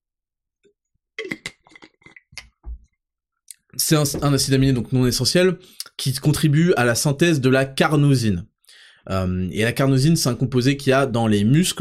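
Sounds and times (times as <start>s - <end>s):
person sipping a drink: 1.2s - 2.5s
gulp of swallowing: 1.2s - 2.6s
speech: 3.9s - 11.7s.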